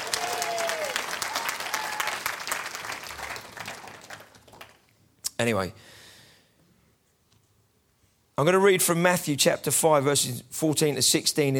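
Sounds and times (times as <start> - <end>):
audience applause: 0.0 - 4.8
speech: 5.4 - 6.0, 8.4 - 11.5.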